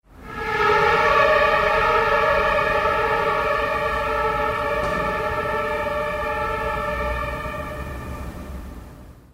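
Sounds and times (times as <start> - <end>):
German emergency siren: 0.1 - 9.3.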